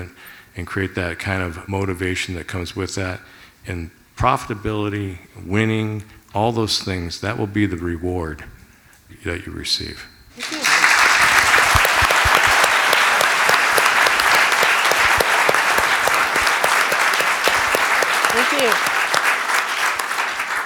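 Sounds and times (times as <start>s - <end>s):
speech: 0.0s - 8.6s, 9.2s - 10.6s
audience applause: 10.4s - 20.6s.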